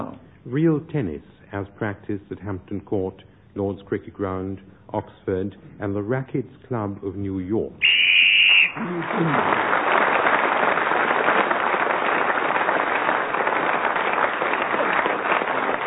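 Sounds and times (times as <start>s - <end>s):
speech: 0.4s - 8.0s, 8.7s - 9.8s
loud audience applause: 8.3s - 15.8s.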